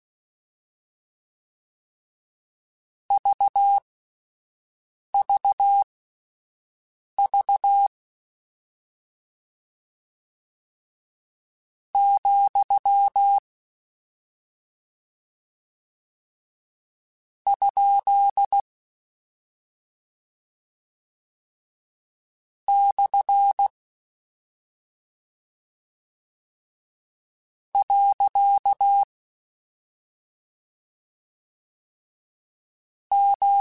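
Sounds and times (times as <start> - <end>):
Morse code CW code groups: 3.1 - 3.8, 5.2 - 5.8, 7.2 - 7.9, 12.0 - 13.4, 17.5 - 18.6, 22.7 - 23.7, 27.8 - 29.1, 33.1 - 33.5.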